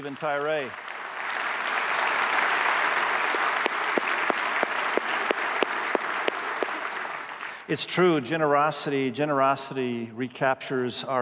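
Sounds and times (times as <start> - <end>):
speech: 0.0 - 1.0, 7.7 - 11.2
audience applause: 0.0 - 7.7.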